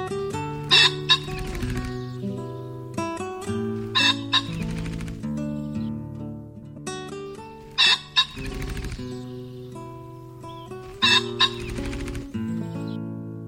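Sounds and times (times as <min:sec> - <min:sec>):
pheasant calling: 0:00.1 - 0:05.9, 0:07.3 - 0:13.0.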